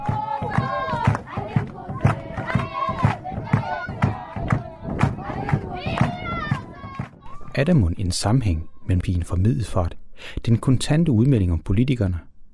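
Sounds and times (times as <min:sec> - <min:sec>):
South African choir singing joyfully: 0:00.0 - 0:07.2
driving rhythmic pulse: 0:00.0 - 0:07.2
speech: 0:07.6 - 0:12.3.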